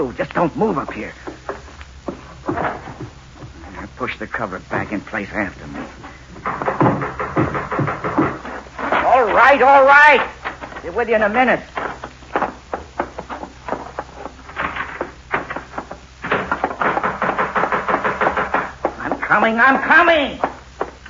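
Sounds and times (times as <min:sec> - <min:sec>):
speech: 0:00.0 - 0:01.3, 0:04.0 - 0:06.6, 0:09.3 - 0:11.8, 0:19.4 - 0:20.5
loud knocking on a door: 0:06.3 - 0:08.7, 0:15.0 - 0:19.5.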